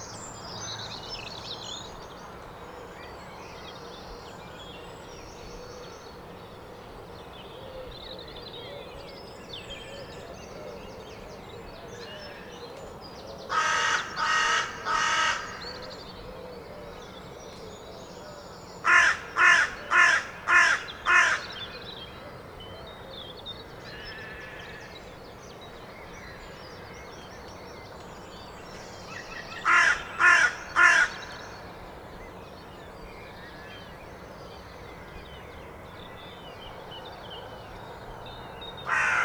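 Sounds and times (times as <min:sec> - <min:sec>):
carrion crow cawing: 0:13.5 - 0:15.6, 0:18.8 - 0:21.6, 0:29.6 - 0:31.4, 0:38.9 - 0:39.2.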